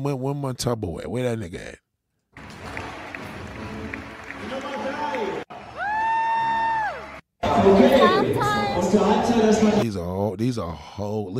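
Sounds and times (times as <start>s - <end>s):
speech: 0.0s - 1.8s, 7.6s - 11.3s
arena crowd applause: 2.4s - 9.2s.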